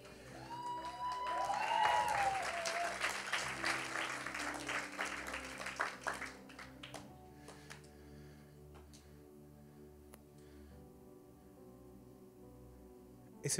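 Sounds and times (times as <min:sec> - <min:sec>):
children applauding: 0:00.0 - 0:07.8.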